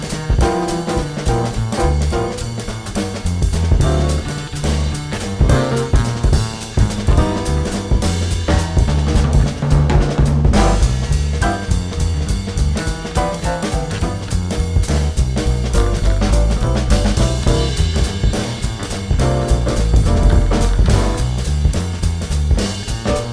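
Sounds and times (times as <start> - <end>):
jazz waltz blues backing track: 0.0 - 23.3.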